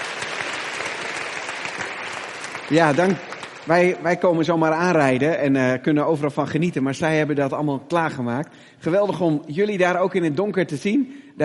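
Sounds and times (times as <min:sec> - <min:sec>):
audience applause for event volunteers: 0:00.0 - 0:04.6
speech: 0:02.7 - 0:11.4.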